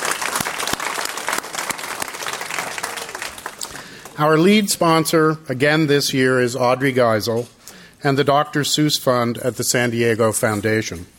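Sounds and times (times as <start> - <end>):
crowd round of applause: 0.0 - 4.2
speech: 4.2 - 11.1.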